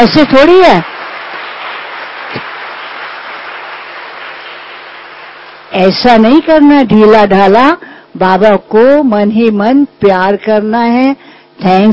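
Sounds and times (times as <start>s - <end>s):
speech: 0.0s - 0.9s, 5.7s - 11.9s
audience clapping at a devotional gathering with children: 0.0s - 6.6s.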